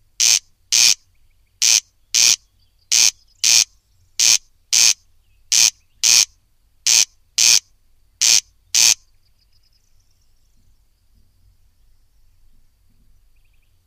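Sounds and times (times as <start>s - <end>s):
corncrake rasping double-note calls: 0.2s - 9.1s.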